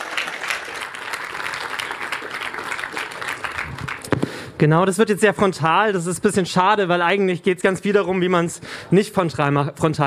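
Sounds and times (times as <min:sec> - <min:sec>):
audience applause: 0:00.0 - 0:04.3
speech: 0:04.6 - 0:10.0.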